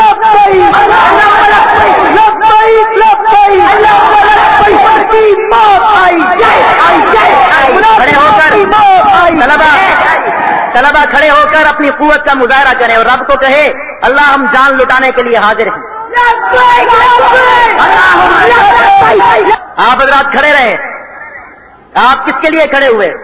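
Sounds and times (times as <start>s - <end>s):
crowd of madrasa students chanting a slogan at a religious gathering: 0.2s - 10.8s, 16.1s - 19.6s
speech: 11.7s - 15.8s, 18.5s - 20.9s, 21.9s - 23.2s.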